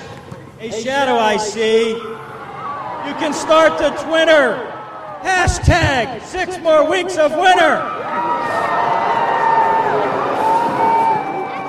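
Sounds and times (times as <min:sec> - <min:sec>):
speech: 0:00.6 - 0:02.3, 0:03.0 - 0:08.3
crowd booing: 0:01.2 - 0:05.8, 0:07.5 - 0:11.6.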